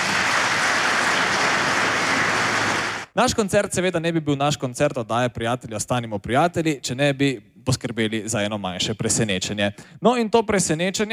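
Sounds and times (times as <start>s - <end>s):
crowd clapping: 0.0s - 3.1s
speech: 3.2s - 11.1s.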